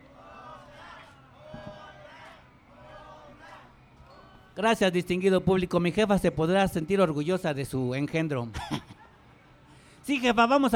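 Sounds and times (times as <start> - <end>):
live show audience chanting for another song: 0.0 - 4.6
speech: 4.6 - 9.0, 10.1 - 10.7.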